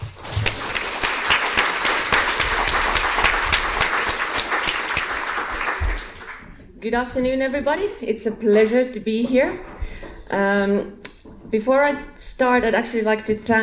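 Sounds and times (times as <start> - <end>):
audience applause: 0.0 - 6.6
speech: 6.8 - 9.7, 10.3 - 13.6.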